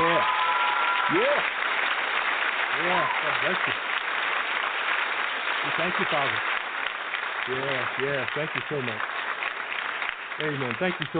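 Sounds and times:
audience applause: 0.0s - 11.1s
speech: 1.1s - 1.6s, 2.8s - 3.9s, 5.6s - 6.5s, 7.4s - 9.1s, 10.4s - 11.1s.

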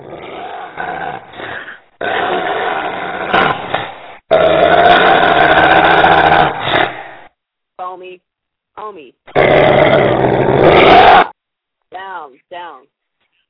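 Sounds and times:
dog growling and barking at siren: 0.0s - 7.3s, 9.3s - 11.4s.

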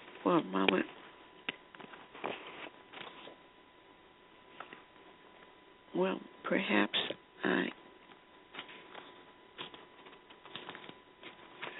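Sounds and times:
speech: 0.2s - 1.0s, 6.0s - 7.7s
pages of a Bible turning in Deuteronomy: 1.8s - 3.4s, 8.5s - 11.7s.

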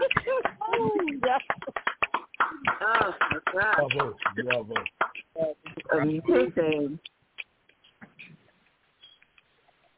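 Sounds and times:
clapping over unmuted online mics: 0.0s - 7.0s
speech: 3.6s - 5.0s, 6.1s - 7.2s.

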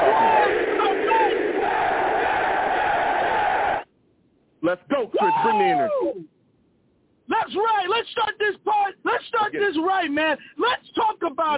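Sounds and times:
crowd of New York Jets football fans roaring: 0.0s - 3.8s, 5.2s - 5.9s
speech: 4.7s - 6.4s, 7.4s - 11.5s.

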